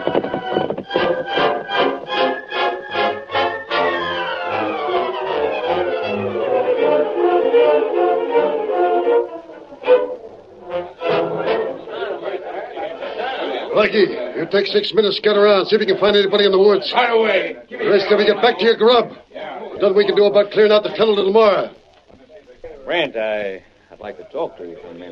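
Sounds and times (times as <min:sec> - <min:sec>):
hoofbeats of horses Silver and Scout ridden off: 0:00.0 - 0:03.4
sustained tonal sounds: 0:00.0 - 0:14.6
speech: 0:13.8 - 0:19.2, 0:19.8 - 0:21.8, 0:22.9 - 0:25.1.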